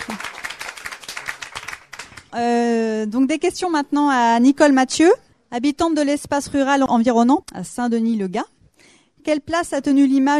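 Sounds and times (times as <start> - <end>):
audience applause at a public talk on rural life: 0.0 - 2.3
speech: 2.3 - 8.6, 9.2 - 10.3.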